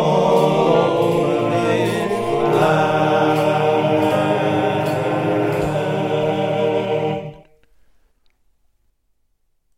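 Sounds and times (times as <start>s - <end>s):
swing vocals with all voices: 0.0s - 7.5s.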